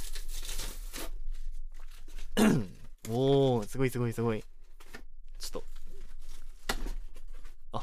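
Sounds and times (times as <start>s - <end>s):
cardboard packaging torn and crinkled open: 0.0s - 2.3s
speech: 2.4s - 4.5s.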